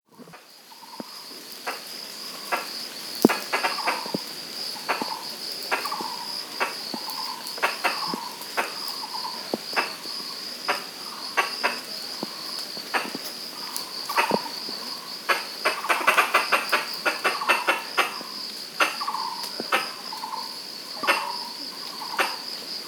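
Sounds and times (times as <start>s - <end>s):
Pallas's squirrel calls: 0.3s - 22.6s.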